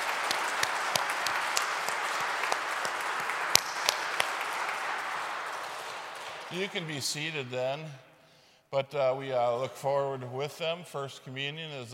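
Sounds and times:
church congregation applauding children making their First Communion: 0.0s - 7.8s
speech: 6.5s - 8.1s, 8.7s - 11.9s.

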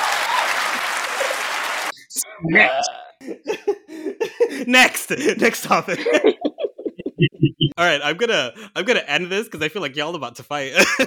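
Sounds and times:
audience clapping: 0.0s - 2.1s
speech: 2.4s - 3.8s, 4.6s - 6.5s, 7.8s - 11.0s
laughter: 2.5s - 7.8s, 10.8s - 11.0s
cough-like sound: 10.8s - 11.0s.

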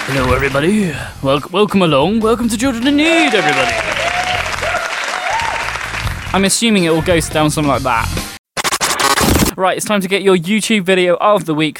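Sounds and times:
speech: 0.1s - 4.0s, 6.3s - 8.3s, 9.6s - 11.7s
audience cheering: 2.8s - 6.4s.

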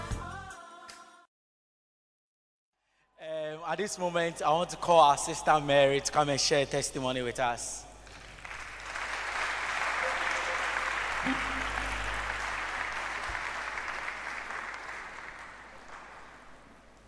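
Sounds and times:
speech: 3.7s - 7.9s
audience clapping: 8.0s - 16.9s.

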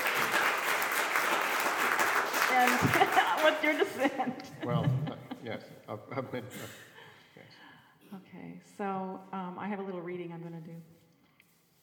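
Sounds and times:
audience applause at an art evening: 0.0s - 4.2s
laughter: 2.6s - 6.9s
speech: 2.6s - 6.9s, 8.1s - 11.0s.

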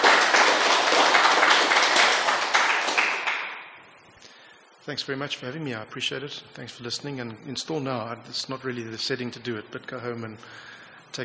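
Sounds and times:
applause: 0.0s - 3.9s
speech: 4.9s - 11.2s.

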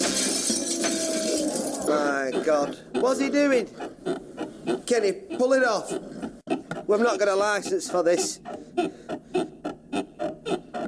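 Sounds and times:
chair smashing through glass window: 0.0s - 1.9s
speech: 1.9s - 6.1s, 6.9s - 9.1s.

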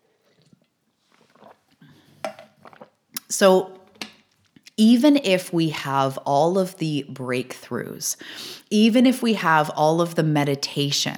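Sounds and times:
sipping and slurping from a cup of coffee: 0.4s - 3.3s
speech: 3.3s - 3.8s, 4.8s - 11.1s
faint breathy noises: 8.2s - 8.7s.

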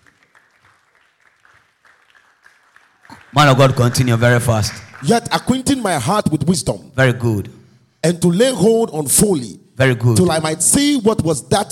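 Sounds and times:
audience clapping: 0.0s - 6.2s
speech: 3.3s - 11.6s.

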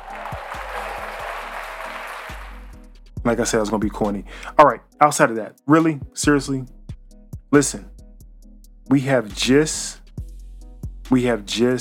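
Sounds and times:
audience applause: 0.0s - 2.7s
speech: 3.2s - 6.8s, 7.5s - 7.9s, 8.9s - 10.0s, 11.1s - 11.7s.

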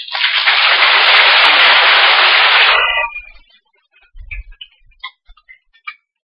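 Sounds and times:
audience applause: 0.0s - 3.4s.

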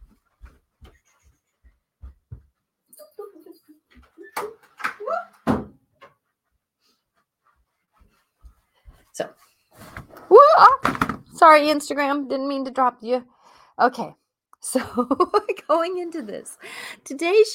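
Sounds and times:
soft taps and knocks: 0.0s - 2.6s
speech: 9.2s - 9.5s, 10.8s - 17.5s.

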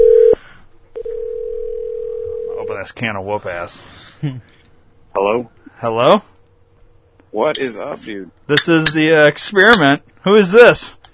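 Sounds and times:
telephone dial tone while placing a call: 0.0s - 0.4s, 1.0s - 2.5s
speech: 2.8s - 4.5s, 5.2s - 6.3s, 7.3s - 11.1s.

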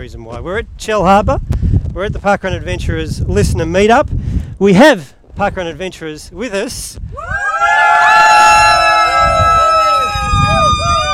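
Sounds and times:
speech: 0.0s - 7.4s
small crowd cheering: 7.1s - 11.1s.

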